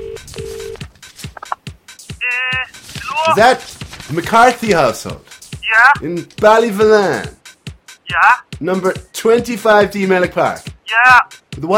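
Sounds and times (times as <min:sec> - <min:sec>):
telephone beeps: 0:00.0 - 0:00.8
speech: 0:03.2 - 0:07.4, 0:08.1 - 0:11.7.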